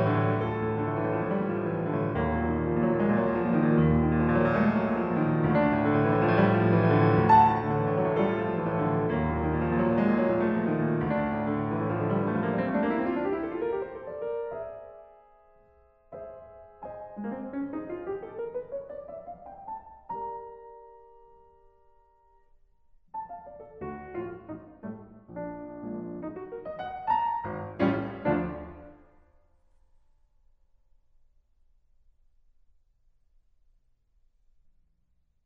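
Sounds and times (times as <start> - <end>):
classical prelude in G-sharp minor: 0.0 - 22.3, 23.2 - 29.2.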